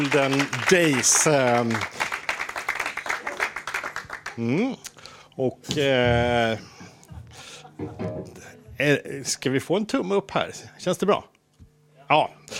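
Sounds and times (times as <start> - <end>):
speech: 0.0 - 2.0, 4.4 - 6.7, 7.8 - 11.3, 12.1 - 12.5
audience applause: 0.0 - 4.6.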